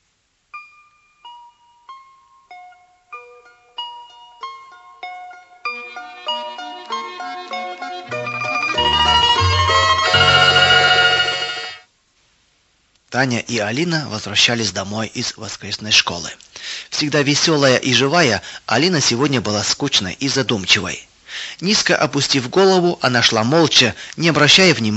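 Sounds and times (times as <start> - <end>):
church bells ringing: 6.5 - 11.8
speech: 13.2 - 24.9.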